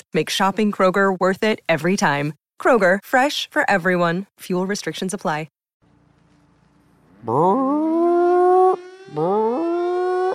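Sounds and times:
speech: 0.1s - 5.6s, 7.2s - 8.0s, 8.7s - 9.7s
alarm siren: 7.2s - 10.3s.

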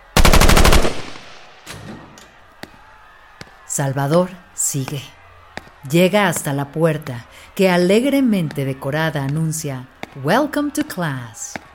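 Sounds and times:
automatic gunfire: 0.1s - 1.7s
single gunshots: 0.1s - 1.7s
speech: 3.8s - 5.2s, 5.8s - 11.6s.

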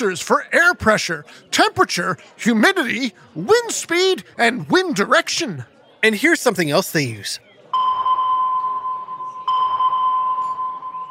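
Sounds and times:
speech: 0.0s - 7.5s
radar ping sound effect: 7.8s - 11.0s.

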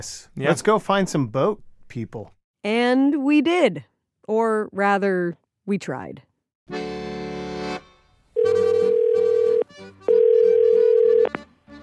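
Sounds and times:
speech: 0.0s - 6.8s
telephone ringing on an outgoing call: 8.4s - 11.4s.

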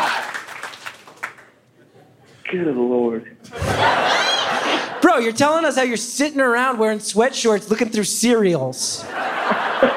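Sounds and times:
audience applause: 0.0s - 1.5s
speech: 2.5s - 3.9s, 5.0s - 9.9s
laughter: 3.5s - 5.4s, 9.0s - 9.9s.

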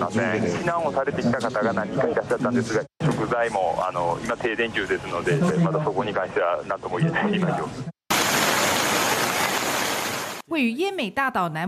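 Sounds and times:
speech: 0.0s - 7.9s, 10.5s - 11.6s
torrential heavy rain: 8.1s - 10.4s.

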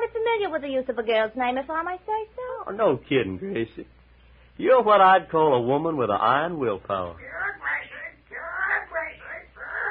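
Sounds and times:
speech: 0.3s - 4.0s, 4.6s - 7.4s
parrot squawking: 7.2s - 9.9s.

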